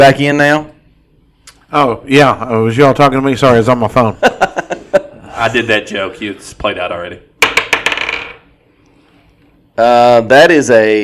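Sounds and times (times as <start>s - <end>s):
speech: 0.0s - 0.7s, 1.7s - 7.3s, 9.8s - 11.0s
dice being rolled: 7.4s - 8.4s.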